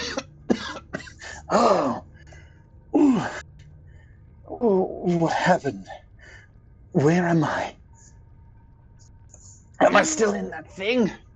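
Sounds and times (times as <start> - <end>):
man coughing after a blow: 0.0 - 2.0
speech: 1.5 - 2.1, 4.6 - 6.0, 6.9 - 7.8, 9.8 - 11.2.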